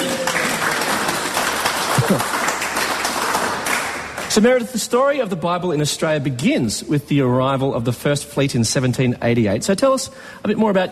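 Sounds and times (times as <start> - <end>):
round of applause: 0.0 - 4.4
speech: 2.1 - 2.3, 4.4 - 10.9.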